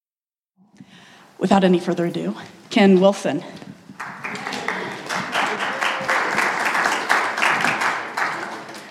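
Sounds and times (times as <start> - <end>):
speech: 1.4 - 3.7
audience applause: 4.0 - 8.8.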